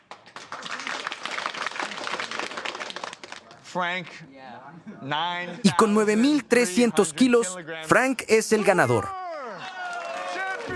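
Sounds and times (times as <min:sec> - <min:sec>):
applause: 0:00.0 - 0:03.4, 0:05.7 - 0:09.1
speech: 0:03.7 - 0:09.2.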